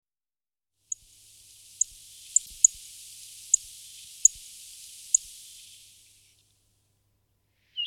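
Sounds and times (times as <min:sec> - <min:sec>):
rustic bunting Emberiza rustica singing: 0:00.9 - 0:06.3.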